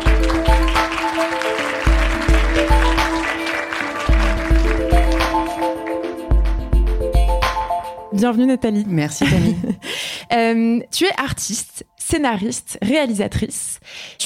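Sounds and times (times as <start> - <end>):
audience applause for guest: 0.0 - 6.6
upbeat music jingle with a thumping beat: 0.0 - 11.2
speech: 8.2 - 14.2.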